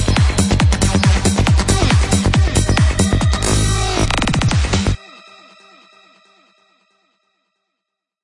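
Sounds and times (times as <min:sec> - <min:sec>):
psy drum kit sounds: 0:00.0 - 0:05.0.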